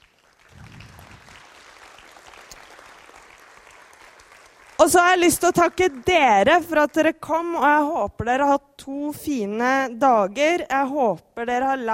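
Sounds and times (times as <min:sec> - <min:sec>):
audience applause: 0:00.0 - 0:06.4
speech: 0:04.8 - 0:11.9.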